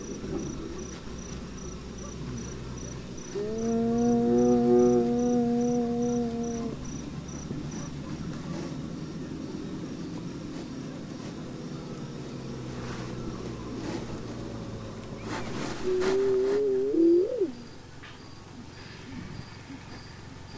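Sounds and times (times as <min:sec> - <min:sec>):
hyenas: 0:01.9 - 0:08.9, 0:12.7 - 0:17.7.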